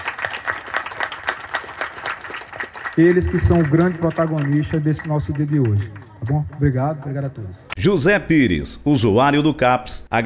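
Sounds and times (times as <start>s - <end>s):
audience clapping for the CAPS community mental health centre users: 0.0s - 7.4s
speech: 3.0s - 10.2s.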